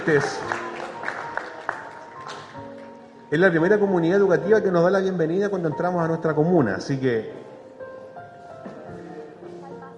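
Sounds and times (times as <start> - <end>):
speech: 0.0 - 0.7, 3.3 - 7.5
audience applause: 0.0 - 2.6.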